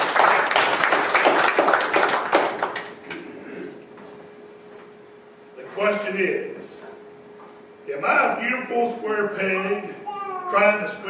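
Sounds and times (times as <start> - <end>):
audience applause and clapping: 0.0 - 3.0
speech: 5.8 - 6.8, 7.9 - 11.0.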